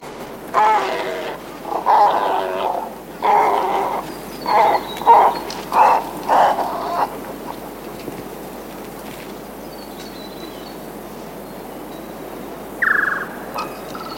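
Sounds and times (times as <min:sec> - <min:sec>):
royal spoonbill grunting calls: 0:00.5 - 0:07.7, 0:12.8 - 0:14.1.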